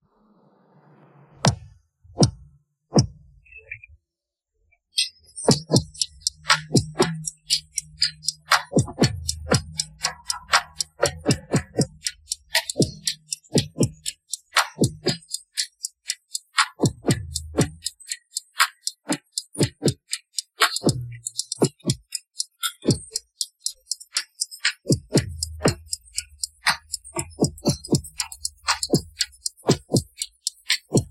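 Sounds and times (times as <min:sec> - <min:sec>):
drum: 0:05.5 - 0:15.4, 0:16.6 - 0:17.9, 0:18.6 - 0:20.0, 0:20.6 - 0:22.1, 0:24.6 - 0:31.0.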